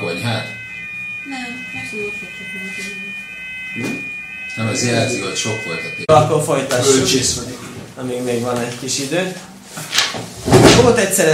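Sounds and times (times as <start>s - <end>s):
alarm going off indoors: 0.0s - 7.5s
speech: 1.9s - 11.3s.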